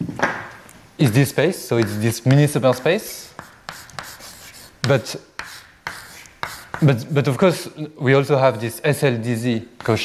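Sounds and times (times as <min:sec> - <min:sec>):
speech: 0:01.0 - 0:03.5, 0:04.9 - 0:05.3, 0:06.8 - 0:10.0
writing on a board during a mathematics lecture: 0:01.8 - 0:07.0.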